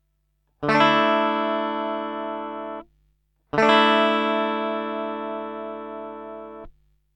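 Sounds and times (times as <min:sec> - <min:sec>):
guitar strumming a D add9 chord: 0:00.6 - 0:02.8, 0:03.5 - 0:06.7.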